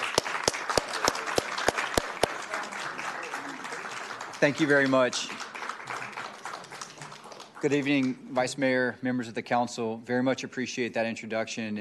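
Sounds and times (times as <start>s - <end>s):
audience applause: 0.0s - 8.2s
speech: 4.4s - 5.4s, 7.6s - 11.7s.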